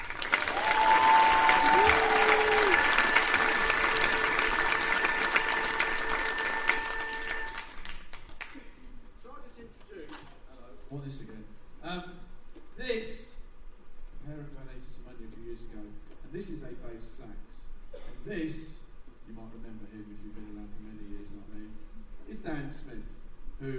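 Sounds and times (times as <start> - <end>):
audience cheering: 0.0 - 7.9.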